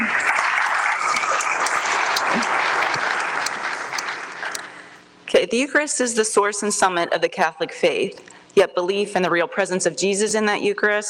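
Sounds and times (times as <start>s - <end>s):
audience applauding a parishioner at a Catholic church gathering: 0.0s - 4.9s
speech: 5.5s - 11.0s.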